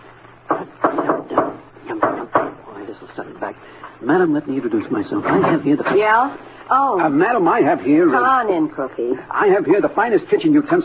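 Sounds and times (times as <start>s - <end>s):
low steady hum: 0.0s - 10.8s
firm knocks on a wooden-sounding door: 0.5s - 2.6s
speech: 2.9s - 10.8s.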